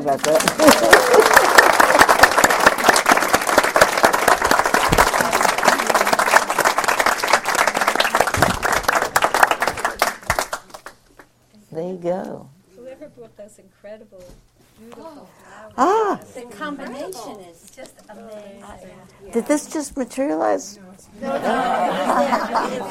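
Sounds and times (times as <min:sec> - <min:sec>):
speech: 0:00.0 - 0:01.4, 0:12.0 - 0:12.5, 0:13.2 - 0:22.8
applause: 0:00.0 - 0:11.3
laughter: 0:00.4 - 0:01.8, 0:21.2 - 0:22.8.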